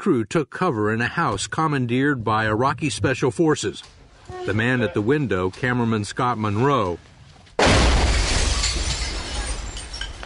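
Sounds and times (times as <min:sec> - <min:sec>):
speech: 0:00.0 - 0:07.8
car exploding: 0:07.6 - 0:10.2.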